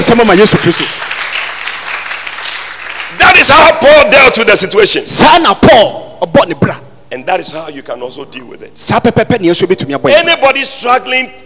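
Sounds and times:
speech: 0:00.0 - 0:01.1, 0:03.4 - 0:11.4
audience clapping: 0:00.0 - 0:03.7.

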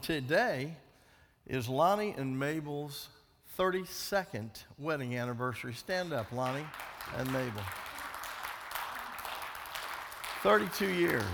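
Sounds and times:
speech: 0:00.0 - 0:00.8, 0:01.5 - 0:07.8, 0:10.4 - 0:11.3
audience applause for a couple's wedding anniversary: 0:06.3 - 0:11.3.

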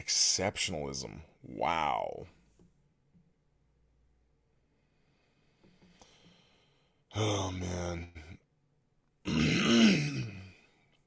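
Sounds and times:
speech: 0:00.0 - 0:02.4, 0:07.2 - 0:08.4
throat clearing into microphone: 0:09.3 - 0:10.5.

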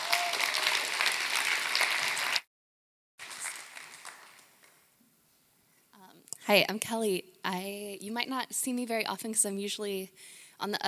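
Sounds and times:
audience applause for a speaker: 0:00.0 - 0:02.5, 0:03.2 - 0:04.6
speech: 0:06.5 - 0:10.8.

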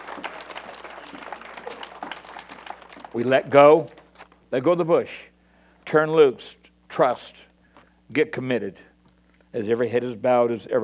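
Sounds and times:
audience applause: 0:00.0 - 0:04.2
speech: 0:03.1 - 0:05.3, 0:05.9 - 0:07.5, 0:08.1 - 0:08.9, 0:09.5 - 0:10.8.

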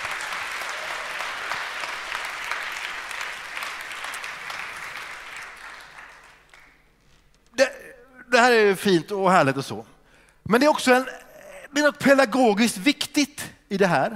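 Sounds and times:
crowd clapping: 0:00.0 - 0:07.2
speech: 0:08.4 - 0:09.9, 0:10.5 - 0:14.1.

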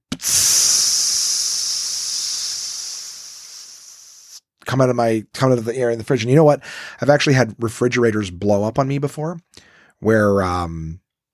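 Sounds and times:
voice imitating a soda can bursting with pop and hiss: 0:00.1 - 0:04.4
speech: 0:04.7 - 0:11.0.

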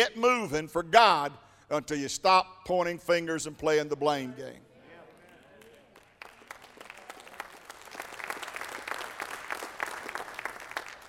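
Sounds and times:
speech: 0:00.0 - 0:04.7
weak audience applause: 0:05.0 - 0:11.0.

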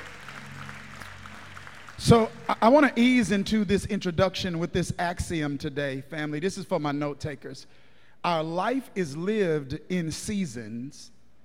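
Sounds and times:
audience clapping: 0:00.0 - 0:03.2
speech: 0:02.0 - 0:11.2.

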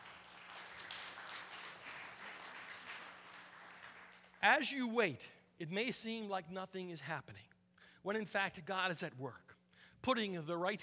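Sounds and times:
audience applause: 0:00.0 - 0:04.4
speech: 0:04.4 - 0:10.8.

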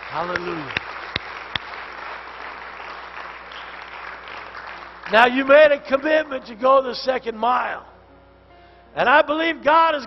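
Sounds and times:
audience clapping: 0:00.0 - 0:06.4
speech: 0:00.1 - 0:00.9, 0:05.1 - 0:07.9, 0:09.0 - 0:10.0.

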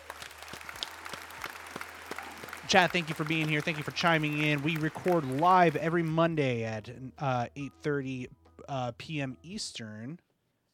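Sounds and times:
hosts clapping hands to end show: 0:00.0 - 0:06.3
speech: 0:02.7 - 0:10.2.

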